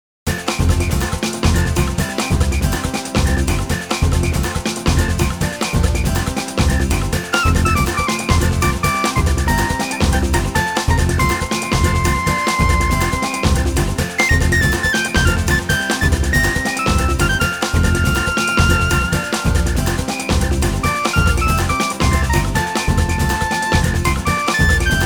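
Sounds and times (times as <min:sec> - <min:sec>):
mariachi music: 0:00.3 - 0:25.0.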